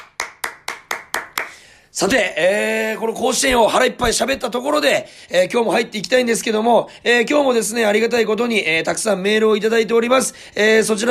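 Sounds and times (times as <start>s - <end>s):
hand clapping: 0.0s - 1.6s
speech: 2.0s - 11.0s.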